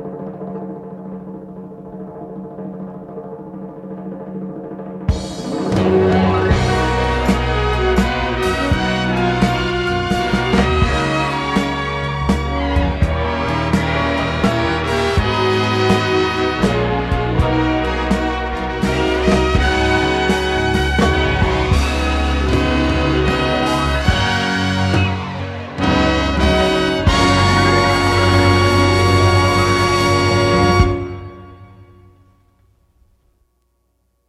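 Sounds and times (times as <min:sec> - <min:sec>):
disco stereo band track: 0:05.0 - 0:32.1.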